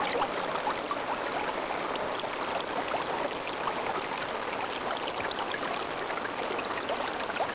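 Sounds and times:
waterfall: 0.0s - 7.5s.

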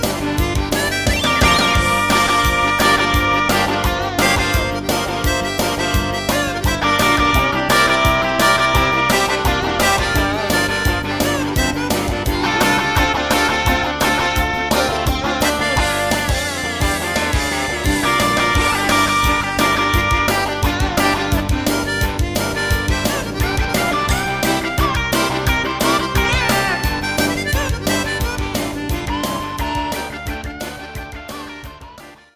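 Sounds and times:
MIDI horn sample: 0.0s - 32.2s.

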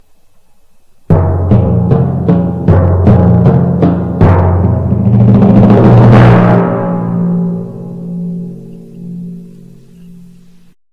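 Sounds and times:
timpani: 1.1s - 9.8s.

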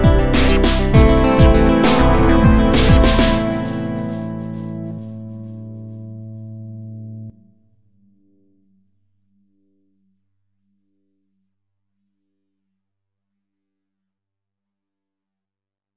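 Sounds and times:
melody: 0.0s - 6.4s.

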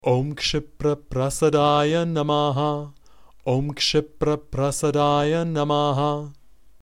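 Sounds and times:
person chanting a Sanskrit mantra: 0.0s - 6.4s.

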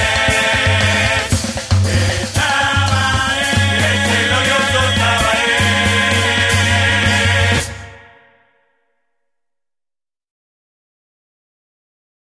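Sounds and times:
anthem music: 0.0s - 8.8s.

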